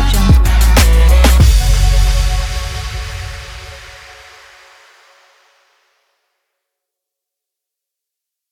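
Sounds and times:
short powerful trap beat: 0.0 - 5.2.

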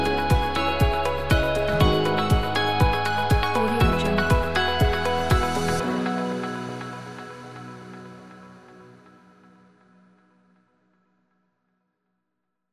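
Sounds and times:
positive ambient music: 0.0 - 9.9.

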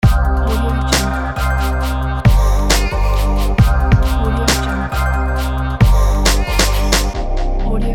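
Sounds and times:
urban hip hop logo jingle: 0.0 - 7.8.

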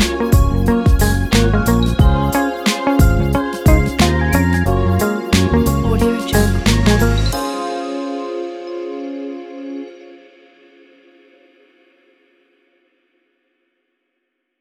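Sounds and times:
soulful R&B music: 0.0 - 10.2.

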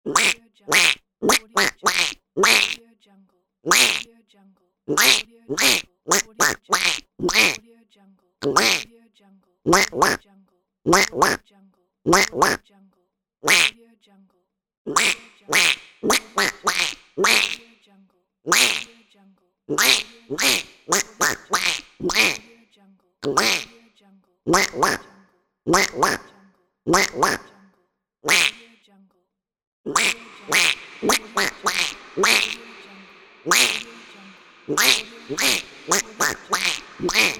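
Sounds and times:
duck quacking: 0.1 - 2.8, 3.7 - 4.1, 4.9 - 7.6, 8.4 - 8.9, 9.7 - 10.2, 10.9 - 11.4, 12.1 - 12.6, 13.5 - 13.8, 14.9 - 17.7, 18.5 - 19.0, 19.7 - 22.5, 23.2 - 23.8, 24.5 - 26.3, 26.9 - 27.6, 28.3 - 28.7, 29.9 - 37.3.

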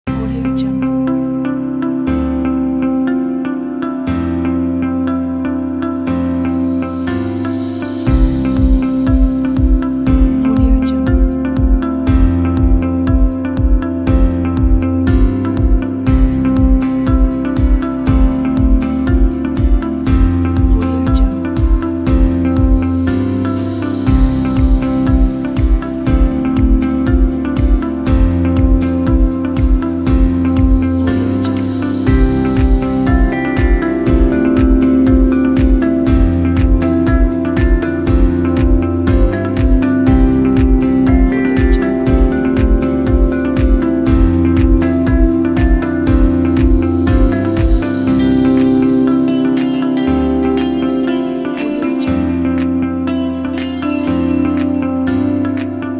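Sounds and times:
corporate motivational music: 0.0 - 55.9.

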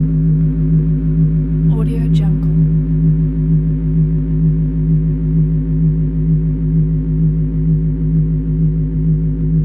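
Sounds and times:
hum: 0.0 - 9.6.

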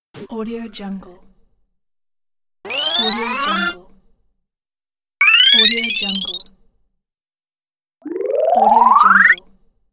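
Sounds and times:
progress bar loading interface sound: 2.7 - 3.8, 5.2 - 6.5, 8.0 - 9.4.

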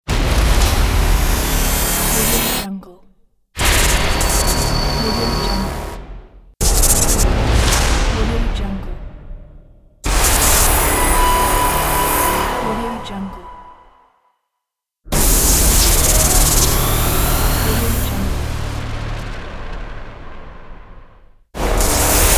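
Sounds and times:
impact hit: 0.1 - 2.4, 3.6 - 13.9, 15.1 - 22.3
transforming glitch: 0.1 - 2.6, 3.6 - 8.6, 10.1 - 13.4, 15.1 - 22.3.

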